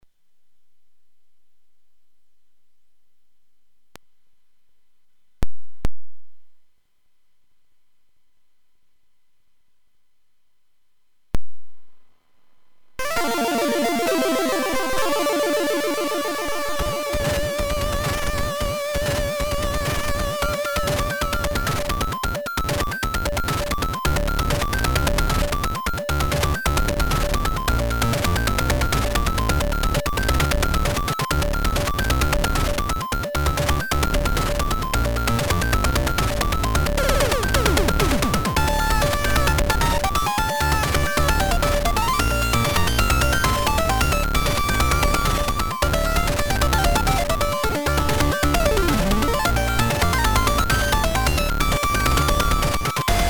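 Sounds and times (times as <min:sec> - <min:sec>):
hardware chiptune recorded directly into line in: 0:13.0 - 0:53.2.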